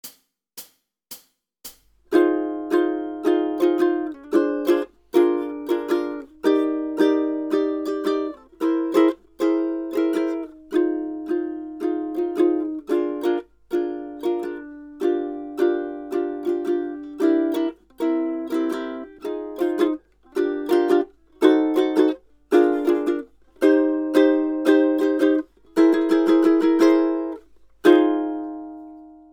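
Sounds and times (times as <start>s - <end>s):
ukulele rhythm study: 1.6s - 29.3s.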